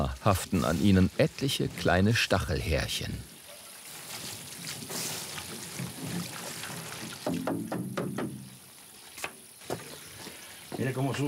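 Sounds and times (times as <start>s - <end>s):
speech: 0.0s - 3.3s, 10.8s - 11.2s
water pouring off: 0.0s - 7.5s
washing cactus fruits in water: 0.0s - 11.2s.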